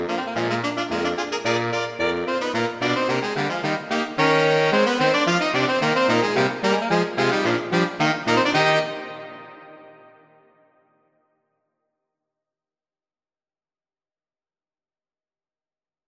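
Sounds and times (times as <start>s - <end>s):
AATB saxophone quartet playing a polka: 0.0s - 10.0s.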